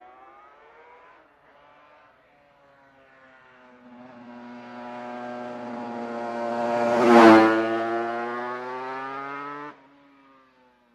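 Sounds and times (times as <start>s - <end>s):
motorcycle high-pitched whine drive-by: 3.2s - 9.8s.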